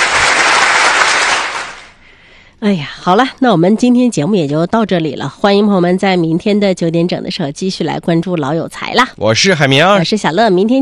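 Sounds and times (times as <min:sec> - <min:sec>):
applause: 0:00.0 - 0:02.0
speech: 0:02.6 - 0:10.7.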